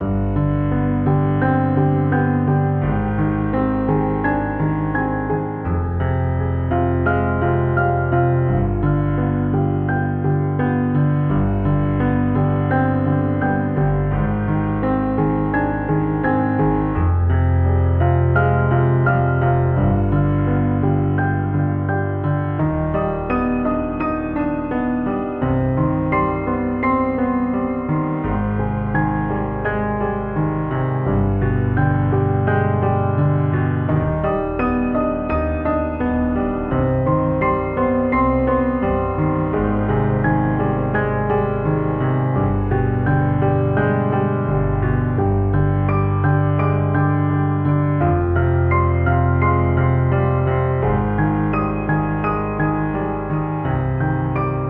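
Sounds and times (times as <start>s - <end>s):
dark keys: 0.0s - 54.6s.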